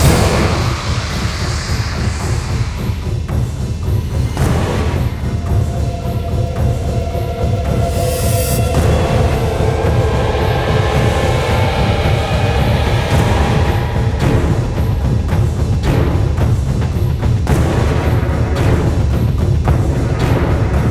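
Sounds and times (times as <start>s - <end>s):
horror combat music: 0.0s - 20.9s.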